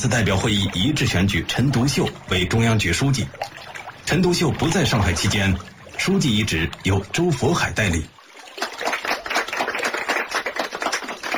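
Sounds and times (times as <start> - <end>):
speech: 0.0 - 8.2
soft applause: 4.6 - 11.3.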